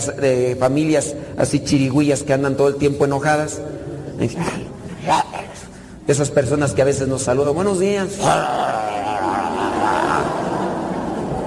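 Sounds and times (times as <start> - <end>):
speech: 0.0 - 5.4, 6.1 - 8.9
person imitating a barking dog: 8.2 - 10.6
laughter: 8.5 - 11.4.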